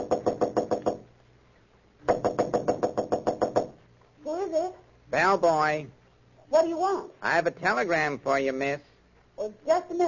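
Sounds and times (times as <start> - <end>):
knocking on a hotel room door: 0.0 - 1.1, 2.1 - 3.8
speech: 4.5 - 10.0.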